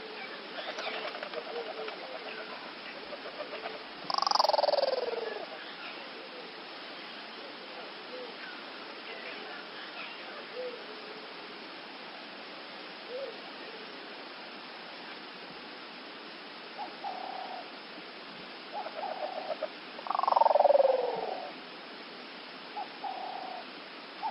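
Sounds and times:
dove cooing in Africa: 0.0s - 6.7s, 7.4s - 8.5s, 10.3s - 11.4s, 13.1s - 13.9s, 16.8s - 17.8s, 18.7s - 21.6s, 22.8s - 24.2s.

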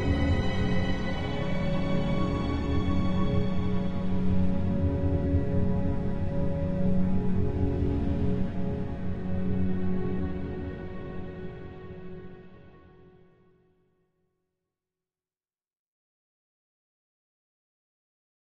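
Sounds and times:
eerie slow orchestral music: 0.0s - 13.0s.

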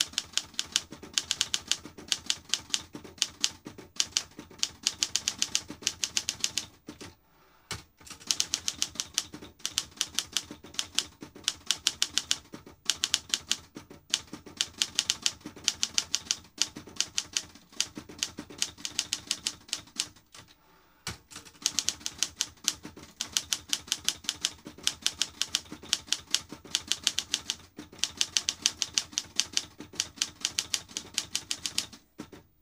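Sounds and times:
manual typewriter typing: 0.0s - 20.5s, 21.1s - 32.6s.

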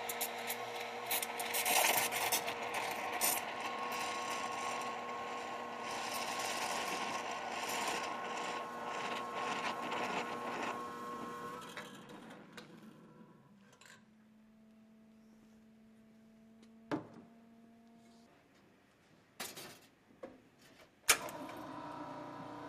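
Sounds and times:
cappuccino coffee machine: 0.0s - 13.2s, 21.1s - 22.6s.

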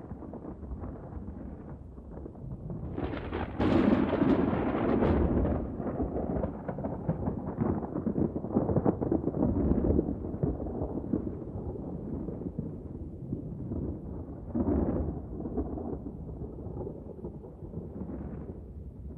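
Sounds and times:
distant thunder: 0.0s - 19.1s.

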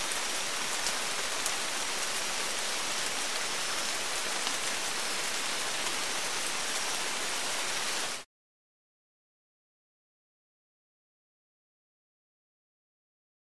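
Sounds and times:
tropical rainforest ambience: 0.0s - 8.2s.

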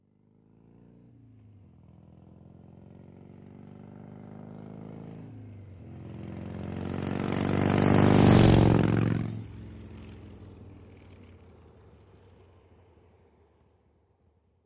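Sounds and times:
Harley motorcycle engine: 1.6s - 12.4s.

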